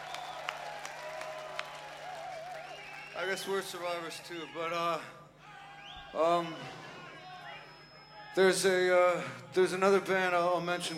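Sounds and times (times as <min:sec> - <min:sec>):
audience applause: 0:00.0 - 0:03.6
speech: 0:03.2 - 0:05.2, 0:06.1 - 0:06.9, 0:08.4 - 0:10.9.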